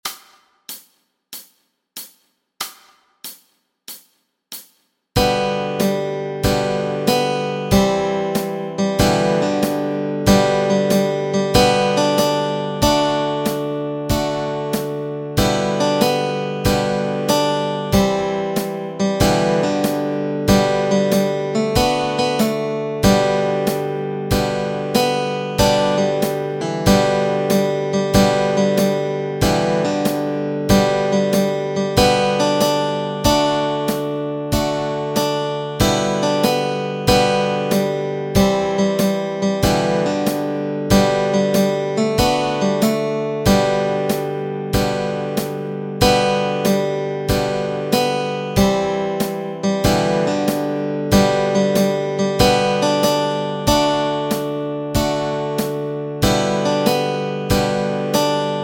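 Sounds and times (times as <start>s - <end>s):
spiritual melody and chords: 5.2s - 58.6s.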